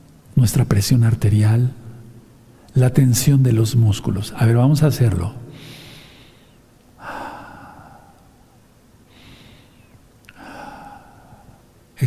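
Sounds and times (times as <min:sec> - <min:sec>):
speech: 0:00.4 - 0:01.8, 0:02.8 - 0:05.7
slow deep breathing: 0:05.5 - 0:11.8.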